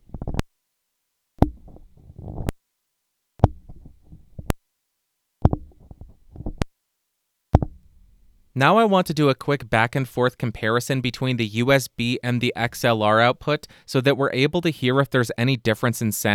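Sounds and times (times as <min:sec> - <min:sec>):
Samson Q2U microphone on-off switch clicks: 0:03.4 - 0:04.6, 0:05.4 - 0:06.7, 0:07.6 - 0:08.5
speech: 0:08.6 - 0:16.3.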